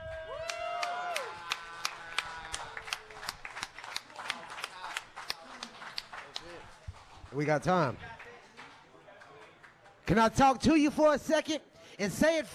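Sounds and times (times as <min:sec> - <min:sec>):
person whooping: 0:00.0 - 0:03.1
audience clapping: 0:00.0 - 0:10.6
speech: 0:07.3 - 0:08.1, 0:10.1 - 0:12.5.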